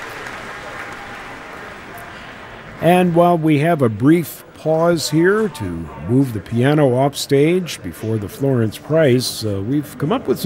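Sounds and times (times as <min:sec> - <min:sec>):
concert audience applause at Pritzker Pavilion in Millennium Park, Chicago: 0:00.0 - 0:02.0
speech: 0:02.8 - 0:10.4.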